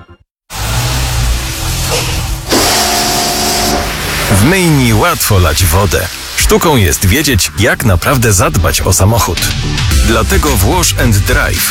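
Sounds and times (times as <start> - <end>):
electronic whoosh AI disclosure signal: 0.5 - 7.6
speech: 4.4 - 11.7.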